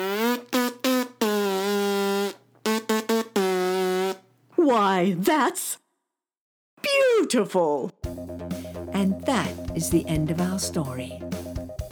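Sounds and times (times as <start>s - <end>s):
person making a nasal buzzing sound: 0.0s - 4.2s
speech: 4.7s - 5.8s, 7.3s - 8.3s, 9.0s - 11.4s.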